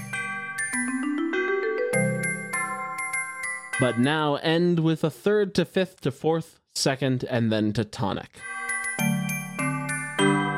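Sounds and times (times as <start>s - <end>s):
bells ringing pitched tones: 0.0s - 4.2s, 8.4s - 10.5s
speech: 3.8s - 8.5s.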